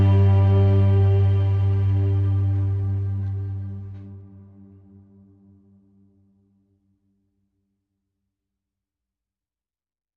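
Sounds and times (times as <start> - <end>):
strings: 0.0 - 4.8
synth pads: 0.0 - 6.1.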